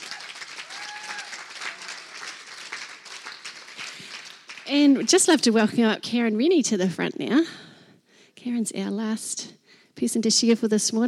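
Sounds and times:
congregation applauding a speaker during a Mother's Day church service: 0.0 - 5.0
speech: 4.7 - 7.7, 8.4 - 11.0.

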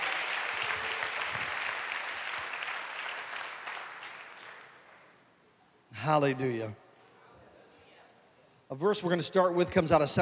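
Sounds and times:
audience applauding: 0.0 - 5.2
speech: 6.0 - 6.8, 8.7 - 10.1.

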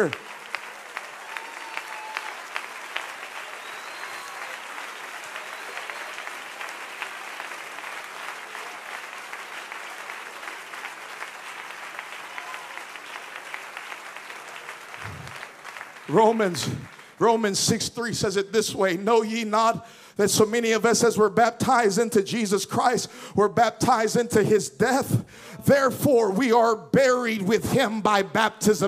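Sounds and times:
speech: 0.0 - 0.3, 16.1 - 28.8
audience clapping hands to the Lord: 0.0 - 18.2.

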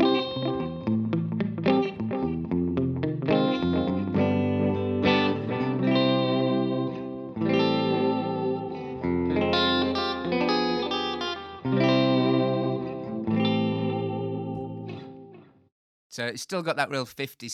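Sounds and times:
electric guitar played through an echo unit: 0.0 - 15.7
speech: 16.2 - 17.5.

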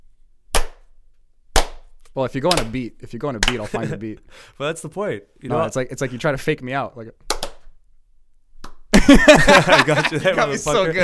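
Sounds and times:
hand clap: 0.5 - 0.9, 1.5 - 2.8, 3.4 - 3.7, 7.3 - 7.7
speech: 2.1 - 7.2, 9.0 - 11.0
laughter: 8.9 - 11.0.

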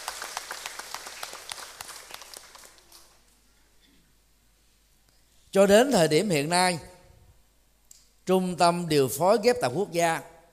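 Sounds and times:
audience round of applause: 0.0 - 3.2
speech: 5.5 - 6.9, 8.3 - 10.3.

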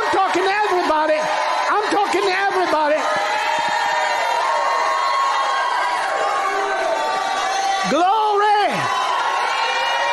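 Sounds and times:
crowd shouting and cheering: 0.0 - 10.1.

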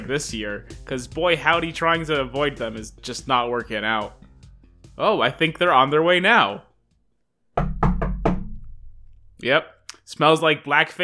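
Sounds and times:
speech: 0.1 - 4.2, 5.0 - 6.7, 9.4 - 11.0
heavy knocks on a door: 7.6 - 9.1.

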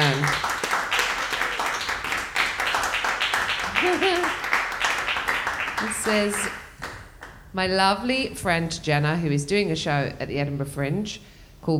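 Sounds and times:
audience applause welcoming a guest onto a live Edinburgh show: 0.0 - 7.4
speech: 6.1 - 6.6, 7.6 - 11.7.

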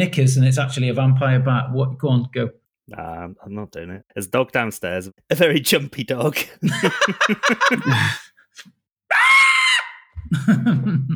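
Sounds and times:
speech: 0.0 - 9.2, 10.3 - 11.1
laughter: 6.5 - 8.3, 10.2 - 11.1
loud human scream: 9.1 - 10.2.

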